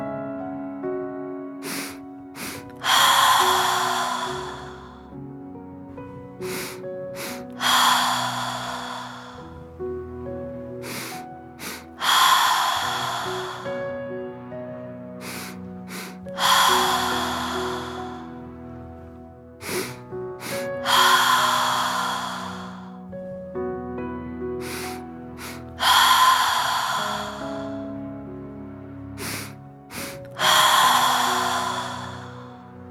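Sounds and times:
quick sharp sniffs through the nose: 0:01.6 - 0:05.0, 0:06.4 - 0:08.8, 0:10.9 - 0:13.7, 0:15.2 - 0:18.2, 0:19.6 - 0:22.9, 0:24.6 - 0:27.8, 0:29.2 - 0:32.4
long breathy sigh out through the mouth: 0:01.6 - 0:05.1, 0:06.4 - 0:09.6, 0:10.8 - 0:14.0, 0:15.2 - 0:18.4, 0:19.6 - 0:23.0, 0:24.6 - 0:27.9, 0:29.2 - 0:32.8.

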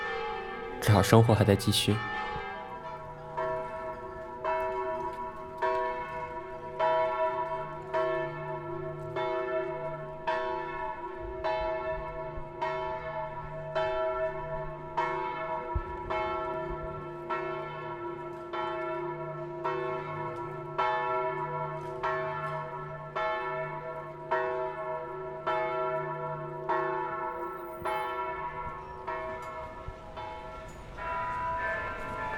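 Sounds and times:
church bells ringing: 0:00.0 - 0:32.3
speech: 0:00.8 - 0:02.3.

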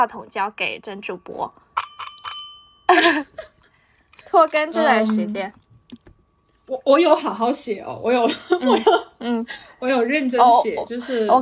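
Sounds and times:
speech: 0:00.0 - 0:01.6, 0:02.9 - 0:03.5, 0:04.3 - 0:05.6, 0:06.7 - 0:11.3
bright bell dings signalling a question: 0:01.8 - 0:03.0
person's voice: 0:04.7 - 0:05.6.

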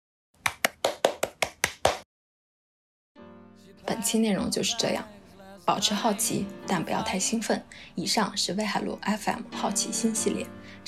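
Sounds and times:
applause: 0:00.5 - 0:02.0
speech: 0:03.7 - 0:10.8.

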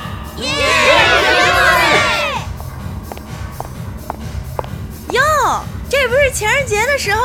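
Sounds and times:
party crowd cheering and whooping in a bar: 0:00.5 - 0:02.5
speech: 0:06.3 - 0:07.2.

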